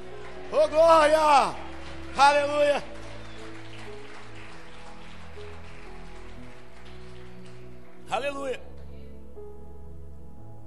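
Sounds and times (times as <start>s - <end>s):
audience applause: 0.0s - 8.4s
speech: 0.5s - 1.6s, 2.2s - 2.9s, 8.1s - 8.7s.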